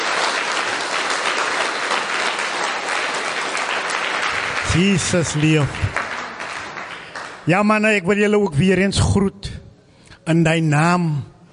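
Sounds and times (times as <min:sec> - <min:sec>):
crowd applause: 0:00.0 - 0:07.5
speech: 0:04.8 - 0:06.0, 0:07.4 - 0:09.5, 0:10.3 - 0:11.3.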